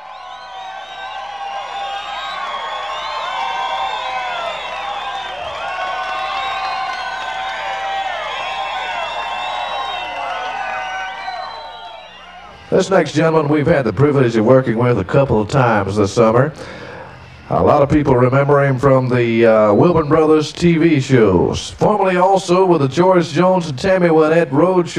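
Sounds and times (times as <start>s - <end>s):
applause: 0.0s - 12.1s
crowd cheering and whooping: 0.0s - 13.2s
speech: 12.8s - 16.8s, 17.5s - 24.9s.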